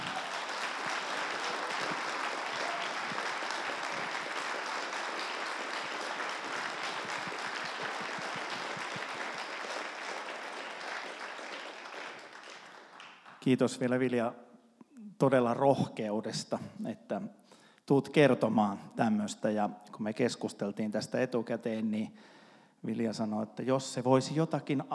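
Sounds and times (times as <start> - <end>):
audience applause: 0.0 - 13.4
speech: 13.4 - 14.5, 15.2 - 24.9.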